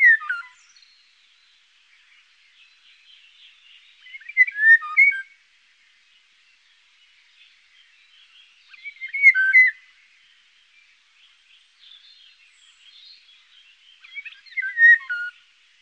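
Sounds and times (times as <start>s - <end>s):
Eurasian golden oriole song of fluty swooping notes: 0.0s - 0.8s, 4.0s - 5.3s, 8.7s - 9.8s, 14.0s - 15.4s.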